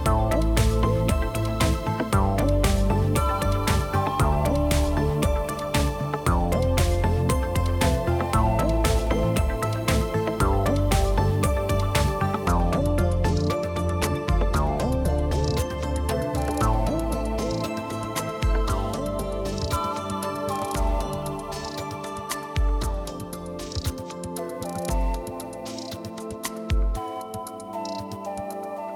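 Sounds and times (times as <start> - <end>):
ambient music: 0.0 - 28.9.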